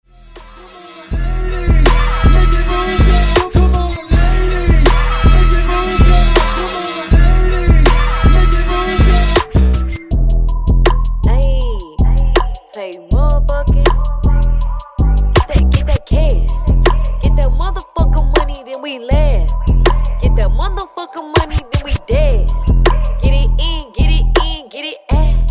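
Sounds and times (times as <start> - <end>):
hype twerk music mix at 80 BPM: 0.0 - 25.4.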